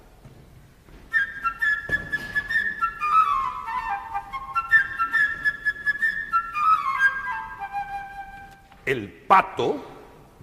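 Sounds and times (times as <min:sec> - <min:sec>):
flute playing a bright high chirping melody with trills: 0:01.1 - 0:08.7
faint orchestral accompaniment: 0:01.1 - 0:08.8
speech: 0:08.9 - 0:09.9.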